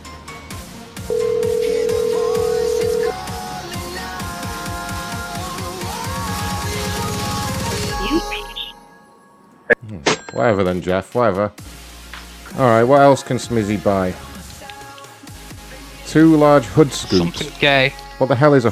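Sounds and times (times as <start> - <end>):
busy rhythmic background: 1.0 - 8.7, 10.4 - 18.2
ringback tone from an outgoing telephone call: 1.1 - 3.4
speech: 10.4 - 11.7, 12.6 - 14.3, 16.1 - 18.6.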